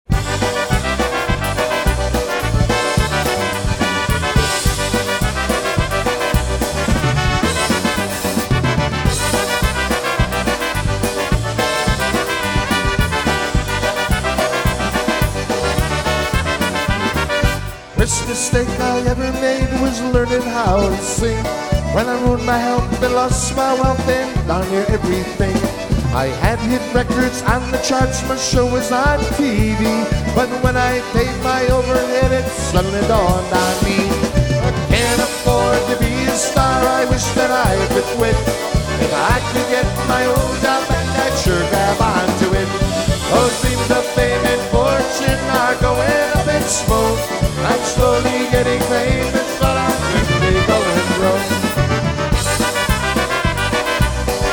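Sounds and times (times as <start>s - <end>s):
live polka jam: 0.0s - 54.5s.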